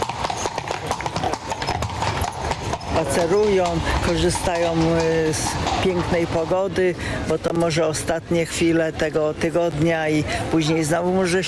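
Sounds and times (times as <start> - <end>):
horse hooves clip-clopping on a city street: 0.0 - 11.4
speech: 3.0 - 11.4.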